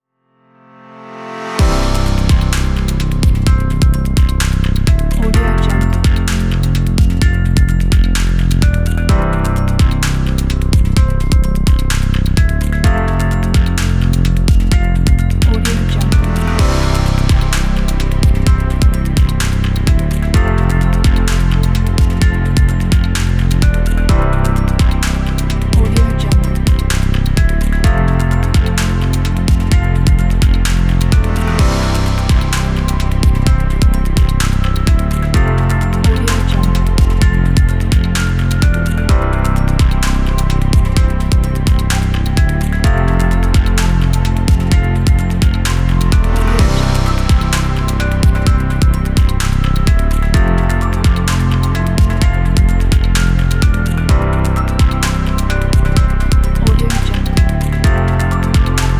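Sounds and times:
inspiring technology music: 0:01.3 - 0:58.9.

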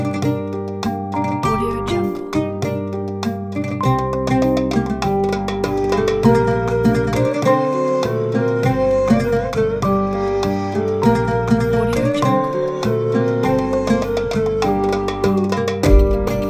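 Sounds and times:
Arabic folk percussion: 0:00.0 - 0:16.4
oud playing folk music: 0:00.0 - 0:16.4
ney playing folk music: 0:01.2 - 0:03.0, 0:05.8 - 0:16.4.

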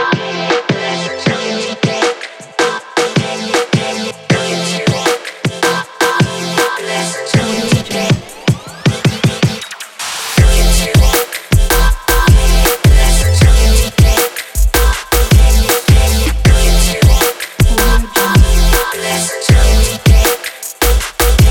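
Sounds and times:
future bass music: 0:00.2 - 0:21.4.

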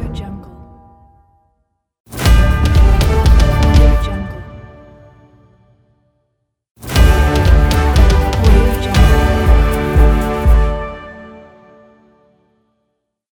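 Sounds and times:
battle logo sting: 0:02.1 - 0:04.1, 0:06.9 - 0:11.1.

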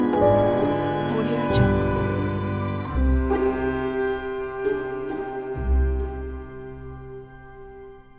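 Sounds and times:
mystery game music: 0:00.1 - 0:06.2.

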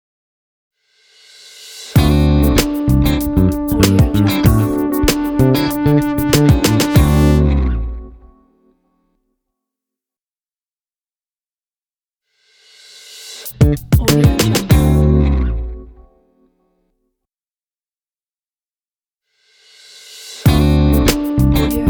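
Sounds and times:
groove logo jingle: 0:02.0 - 0:08.3, 0:13.6 - 0:15.1, 0:20.5 - 0:21.8.

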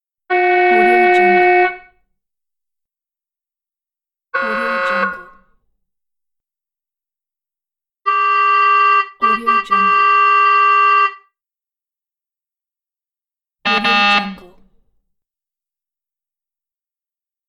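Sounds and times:
horns honking: 0:00.3 - 0:01.9, 0:04.4 - 0:05.4, 0:08.1 - 0:11.2, 0:13.7 - 0:14.4.

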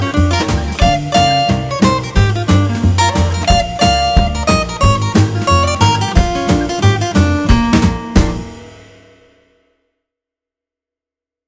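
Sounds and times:
jazz guitar: 0:00.0 - 0:09.0.

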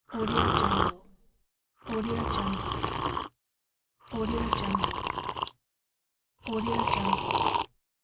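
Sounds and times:
person sipping coffee: 0:00.1 - 0:01.0, 0:02.1 - 0:03.3, 0:04.2 - 0:05.6, 0:06.4 - 0:07.7.

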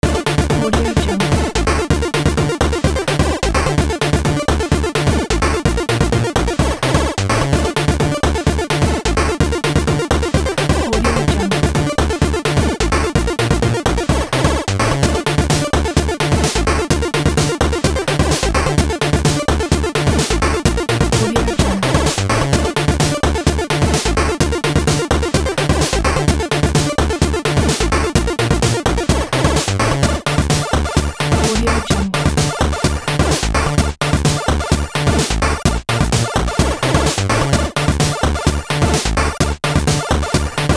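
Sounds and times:
8-bit game music loop: 0:00.0 - 0:40.7.

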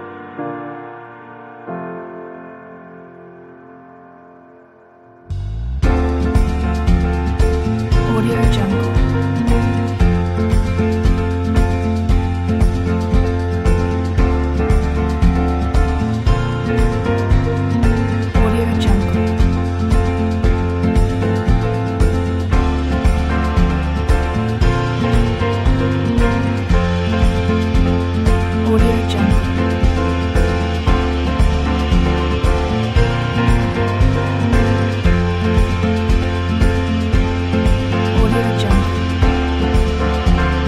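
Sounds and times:
inspirational warm guitar: 0:02.4 - 0:40.6.

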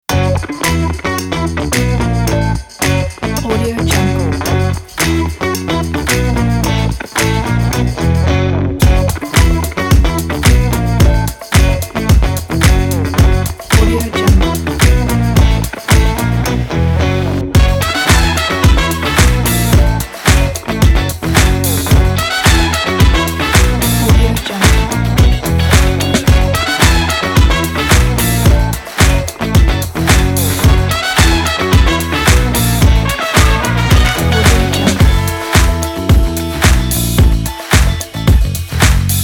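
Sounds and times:
funk music: 0:00.0 - 0:39.2.

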